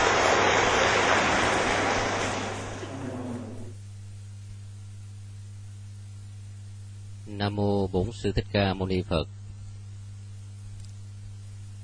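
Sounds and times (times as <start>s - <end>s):
audience applause: 0.0s - 3.7s
speech: 7.4s - 9.4s.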